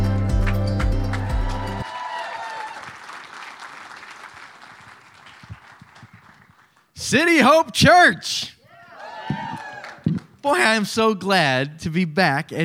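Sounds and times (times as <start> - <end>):
audience applause welcoming a speaker: 0.4 - 6.8, 9.0 - 10.1
speech: 7.1 - 8.6, 10.4 - 12.6.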